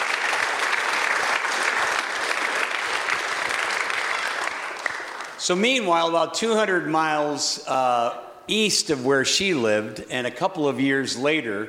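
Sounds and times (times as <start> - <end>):
audience clapping: 0.0 - 5.8
speech: 5.5 - 11.6.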